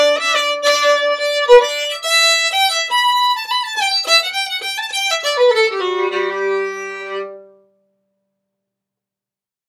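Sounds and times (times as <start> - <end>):
fiddle breakdown tune: 0.0 - 7.5.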